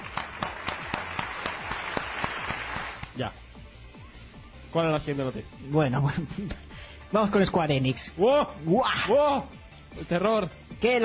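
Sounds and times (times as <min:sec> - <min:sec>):
applause: 0:00.0 - 0:03.1
speech: 0:03.2 - 0:03.4, 0:04.7 - 0:11.0.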